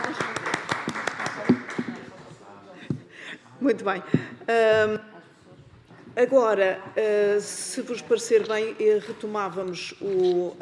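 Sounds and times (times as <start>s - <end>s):
audience clapping hands: 0.0s - 2.3s
low murmur of voices: 1.2s - 10.3s
speech: 3.6s - 5.1s, 6.2s - 10.6s.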